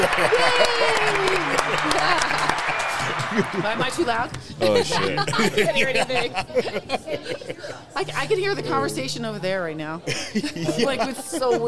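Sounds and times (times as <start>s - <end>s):
speech: 0.0s - 0.6s, 3.4s - 11.6s
crowd applause: 0.0s - 6.2s
people cheering and whooping: 0.0s - 6.6s
laughter: 0.0s - 8.9s, 10.0s - 11.6s.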